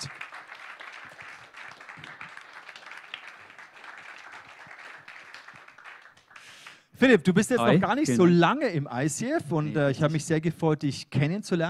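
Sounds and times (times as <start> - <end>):
audience applause welcoming a guest: 0.0 - 6.9
speech: 7.0 - 11.6.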